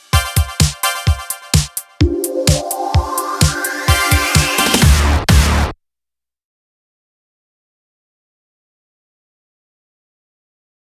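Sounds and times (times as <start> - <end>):
off vocal instrumental music: 0.0 - 5.7.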